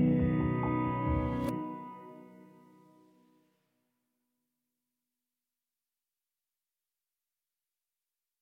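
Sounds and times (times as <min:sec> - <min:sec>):
instrumental music with less synth: 0:00.0 - 0:03.4.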